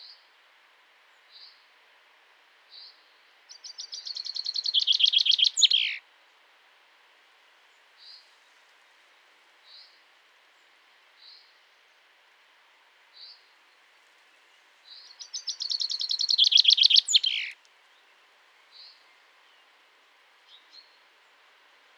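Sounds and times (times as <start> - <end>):
common chaffinch singing: 3.6 - 6.0, 14.9 - 17.6.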